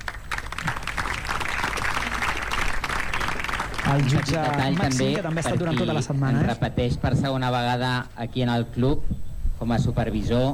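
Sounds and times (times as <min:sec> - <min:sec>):
crowd applause from the stands: 0:00.0 - 0:06.4
speech: 0:03.9 - 0:10.5.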